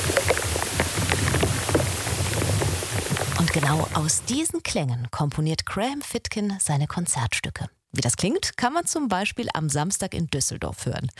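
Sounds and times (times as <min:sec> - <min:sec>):
fluid popping and crackling inside beech tree: 0:00.0 - 0:04.4
speech: 0:03.6 - 0:11.1.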